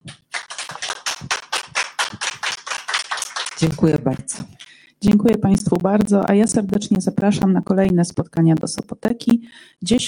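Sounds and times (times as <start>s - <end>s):
audience applause: 0.2s - 3.9s
speech: 3.6s - 10.0s.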